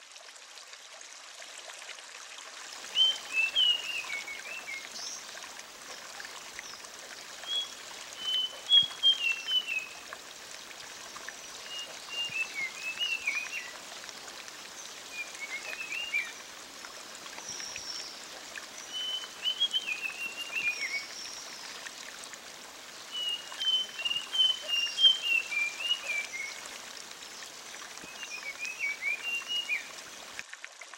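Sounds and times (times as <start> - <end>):
rushing flowing water: 0.0 - 30.9
Sulingan bird whistling song: 3.0 - 4.8, 7.5 - 10.0, 11.7 - 13.7, 15.2 - 16.4, 18.9 - 21.2, 23.2 - 26.6, 28.1 - 29.9.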